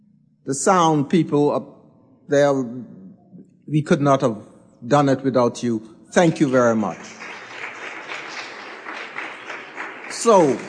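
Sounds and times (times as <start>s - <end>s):
speech: 0.4s - 3.0s, 3.7s - 7.3s, 10.2s - 10.6s
audience applause: 6.8s - 10.6s.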